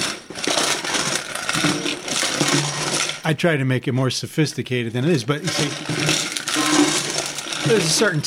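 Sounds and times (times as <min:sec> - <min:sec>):
old steel coffee can with lids and bottle caps being shaken: 0:00.0 - 0:03.3, 0:05.0 - 0:08.2
speech: 0:03.3 - 0:06.7, 0:07.6 - 0:08.2.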